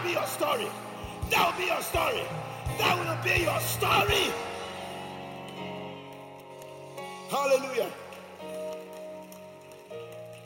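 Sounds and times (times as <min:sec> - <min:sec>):
audience clapping: 0:00.0 - 0:10.4
speech: 0:00.2 - 0:04.5, 0:07.3 - 0:08.0.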